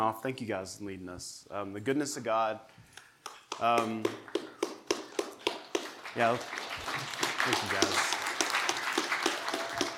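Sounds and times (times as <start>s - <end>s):
speech: 0.0s - 2.8s, 3.6s - 4.4s, 6.2s - 8.1s
audience clapping: 3.2s - 9.9s.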